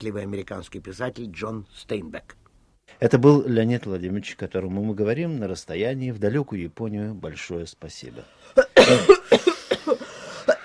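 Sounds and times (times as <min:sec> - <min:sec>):
speech: 0:00.0 - 0:09.6
man coughing from Belomorkanal papirosa cigarette smoke: 0:08.6 - 0:10.6.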